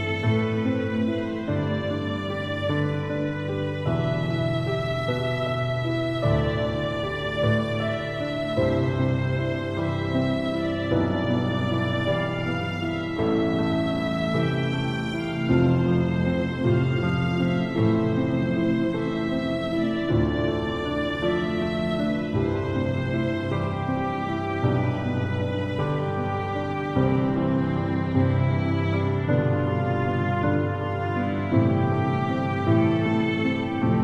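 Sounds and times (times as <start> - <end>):
piano playing funeral music: 0.0 - 34.0
viola playing funeral music: 0.0 - 34.0.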